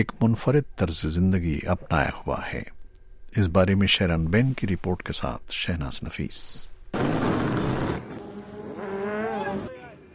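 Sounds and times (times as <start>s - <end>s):
speech: 0.0s - 7.3s
motorcycles riding on city streets, engines roaring and revving: 7.0s - 10.0s.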